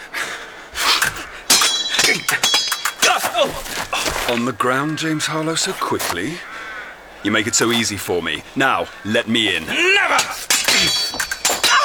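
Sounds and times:
sabers clashing in a sword fight: 0:00.8 - 0:04.4, 0:09.7 - 0:11.8
speech: 0:04.3 - 0:06.5, 0:07.2 - 0:11.2.

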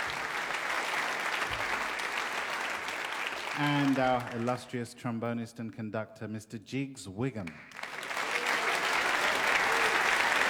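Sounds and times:
audience applause for big band: 0:00.0 - 0:04.7, 0:07.5 - 0:10.4
speech: 0:03.6 - 0:07.8.

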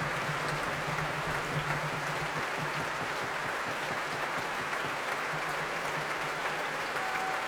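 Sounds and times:
large concert crowd clapping in a reverberant hall: 0:00.0 - 0:07.4
concert crowd cheering: 0:02.4 - 0:07.4.

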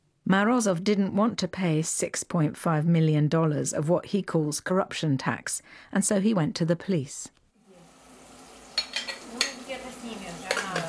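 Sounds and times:
speech: 0:00.3 - 0:07.4
tea being made at a home near London: 0:07.6 - 0:10.8.

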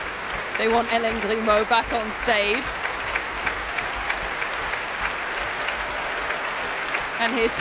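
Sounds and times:
audience clapping: 0:00.0 - 0:07.6
speech: 0:00.6 - 0:02.8, 0:07.2 - 0:07.6.

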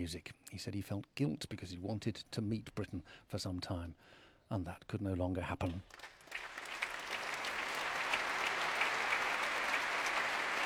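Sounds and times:
speech: 0:00.0 - 0:06.2
concert hall audience applause at the Royal Albert Hall: 0:05.9 - 0:10.6.

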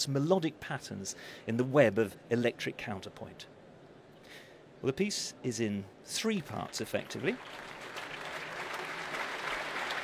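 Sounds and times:
speech: 0:00.0 - 0:03.6, 0:04.8 - 0:07.7
concert audience applause for a guitarist: 0:06.7 - 0:10.0.

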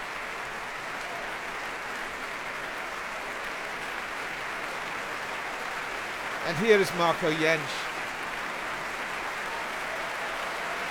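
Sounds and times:
audience applause at a choir concert: 0:00.0 - 0:10.8
speech: 0:06.5 - 0:08.0.

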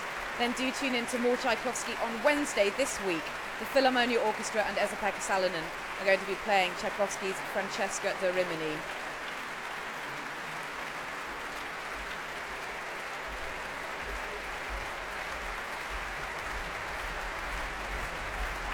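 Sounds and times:
concert audience applauding: 0:00.0 - 0:18.7
speech: 0:00.4 - 0:09.0.

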